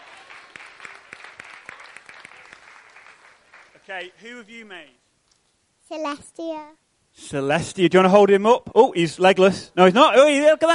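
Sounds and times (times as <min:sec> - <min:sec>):
small crowd clapping in a round of applause: 0:00.0 - 0:04.2
speech: 0:03.9 - 0:05.0, 0:05.9 - 0:10.7.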